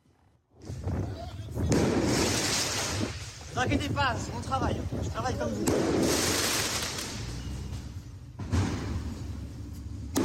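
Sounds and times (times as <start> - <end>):
firework mortar shots fired at firefighters: 0.5 - 10.2
sustained crackling hiss of fireworks: 1.7 - 3.8, 5.6 - 7.4
speech: 3.6 - 6.5.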